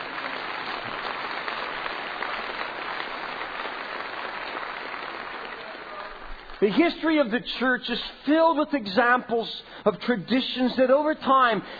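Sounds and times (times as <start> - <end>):
audience applause: 0.0 - 6.7
speech: 6.6 - 11.7.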